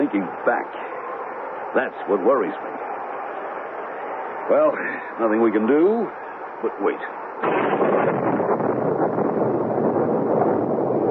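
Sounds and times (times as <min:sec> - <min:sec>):
speech: 0:00.1 - 0:00.8, 0:01.7 - 0:02.9, 0:04.5 - 0:08.3
tropical storm: 0:07.4 - 0:11.0.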